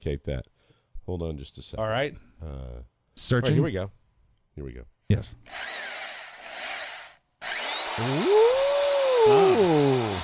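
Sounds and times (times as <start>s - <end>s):
speech: 0.0s - 4.0s, 4.6s - 5.6s, 8.0s - 8.6s, 9.2s - 10.2s
hairdryer running: 7.5s - 10.2s.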